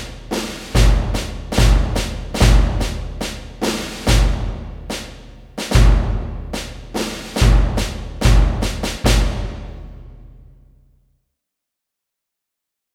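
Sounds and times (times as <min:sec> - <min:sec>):
procession march music: 0:00.0 - 0:09.6.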